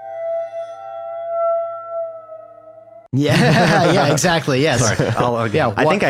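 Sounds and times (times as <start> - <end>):
bowed waterphone eerie high-pitched tones: 0.0 - 3.1
speech: 3.1 - 6.0
laughter: 3.2 - 6.0.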